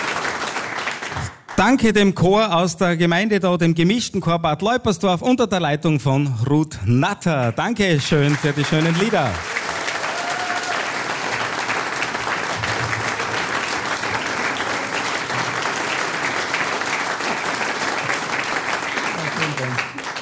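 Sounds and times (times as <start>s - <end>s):
audience applause: 0.0s - 1.6s, 8.1s - 20.2s
speech: 1.6s - 9.6s.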